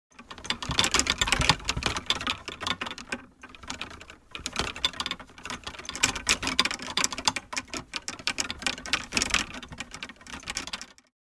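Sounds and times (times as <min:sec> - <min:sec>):
golf clubs shaking in tour bag: 0:00.2 - 0:11.0.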